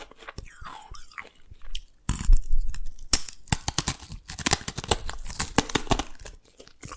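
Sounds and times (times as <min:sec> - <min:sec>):
Dalgona candy being tapped and cracked: 0:02.1 - 0:06.4.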